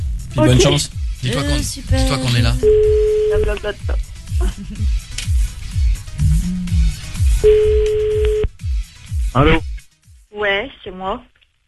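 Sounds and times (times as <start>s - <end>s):
music: 0.0s - 11.3s
speech: 0.4s - 5.0s, 9.4s - 9.7s, 10.4s - 11.3s
phone ringback tone while a call is placed: 2.6s - 3.4s, 7.4s - 8.5s
steady beep: 2.6s - 3.4s.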